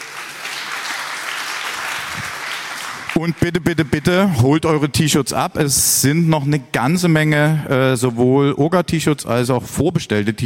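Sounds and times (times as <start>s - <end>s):
audience applause: 0.0s - 4.4s
speech: 3.2s - 10.4s.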